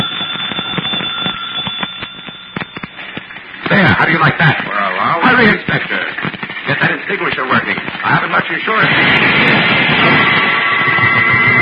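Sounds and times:
doorbell ringing: 0:00.0 - 0:03.4
speech: 0:04.0 - 0:11.2.

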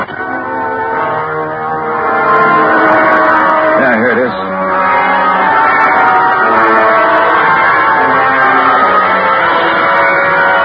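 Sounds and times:
operatic screaming from an opera death scene on a record: 0:00.1 - 0:10.6
thin orchestral backing on a record: 0:00.3 - 0:07.5.

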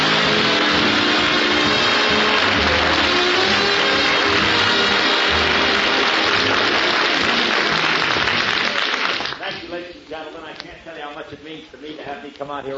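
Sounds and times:
crowd applauding: 0:00.0 - 0:09.8
speech: 0:12.5 - 0:12.7.

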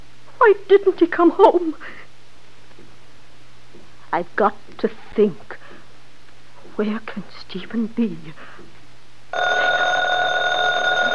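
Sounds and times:
speech: 0:00.4 - 0:02.0, 0:04.1 - 0:05.5, 0:06.8 - 0:08.6
telephone ringing: 0:09.3 - 0:11.1.

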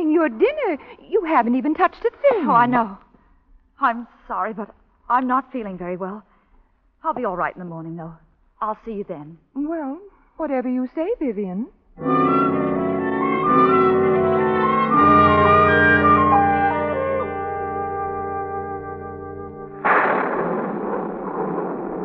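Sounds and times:
speech: 0:00.2 - 0:03.0, 0:03.8 - 0:06.3, 0:07.0 - 0:12.6
sustained music chords: 0:12.0 - 0:19.8
storm thunder rumbling: 0:18.8 - 0:22.0.

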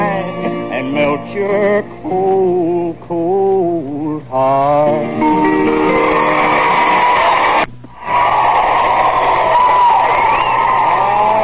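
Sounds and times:
speech: 0:00.8 - 0:05.6
crowd cheering: 0:05.8 - 0:11.4
audience applause: 0:06.2 - 0:11.4.

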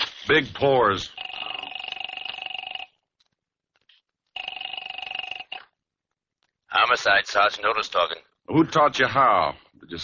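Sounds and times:
speech: 0:00.3 - 0:01.2, 0:06.9 - 0:10.0
telephone ringing: 0:01.0 - 0:03.3, 0:04.3 - 0:05.8.

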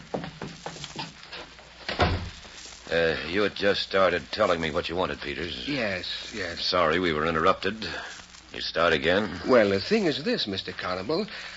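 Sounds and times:
door closing: 0:01.9 - 0:02.4
speech: 0:02.9 - 0:11.5.

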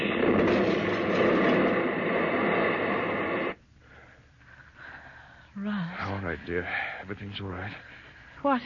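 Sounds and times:
meteor crashing into a field: 0:00.0 - 0:03.6
speech: 0:06.4 - 0:08.6.

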